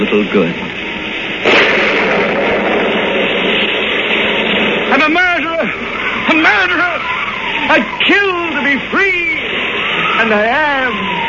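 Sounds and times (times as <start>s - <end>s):
speech: 0.1s - 0.7s, 7.7s - 9.4s, 10.2s - 11.2s
raging storm at sea off the coast of Maine: 0.7s - 11.2s.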